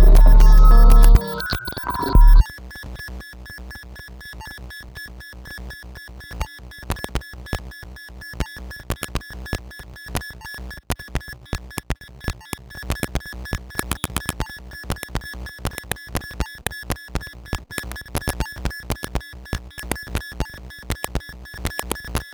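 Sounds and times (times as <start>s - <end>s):
six strings used as a noise oscillator: 0.0s - 2.4s.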